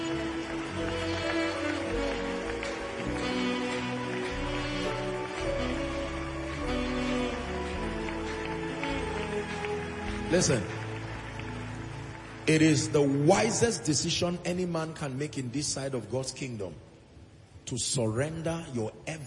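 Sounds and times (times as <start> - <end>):
audience clapping: 0.0 - 14.7
speech: 10.3 - 10.8, 12.5 - 16.9, 17.7 - 19.2.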